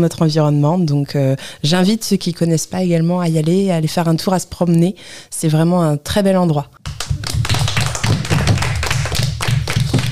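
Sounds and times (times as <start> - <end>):
speech: 0.0 - 6.8
applause from school teams: 6.8 - 10.1.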